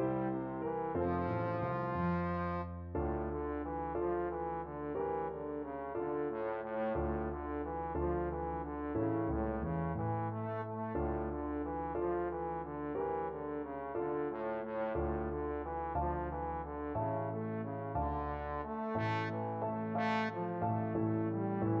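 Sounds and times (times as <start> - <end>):
trombone playing a slumber song: 0.0 - 21.7.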